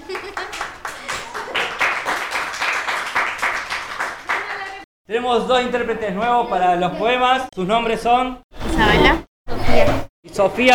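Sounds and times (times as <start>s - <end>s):
applause for the performers: 0.0s - 4.9s
speech: 5.1s - 9.2s, 9.8s - 10.7s.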